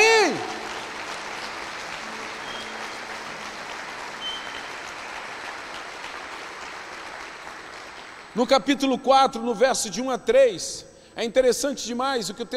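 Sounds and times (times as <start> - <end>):
audience applause: 0.0 - 8.4
speech: 8.4 - 12.5.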